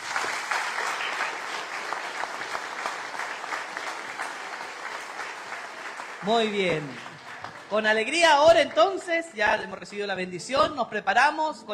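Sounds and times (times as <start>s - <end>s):
applause: 0.0s - 9.3s
speech: 6.2s - 7.1s, 7.7s - 11.7s.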